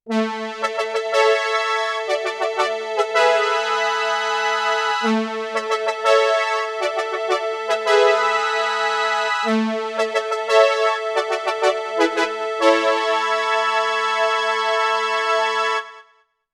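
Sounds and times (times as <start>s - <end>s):
Modal Electronics Cobalt5s synthesizer: 0.0s - 16.1s.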